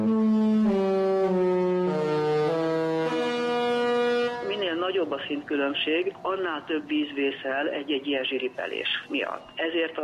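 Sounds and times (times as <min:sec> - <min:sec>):
cruise ship horn blasting a melody: 0:00.0 - 0:05.1
speech: 0:05.1 - 0:10.0.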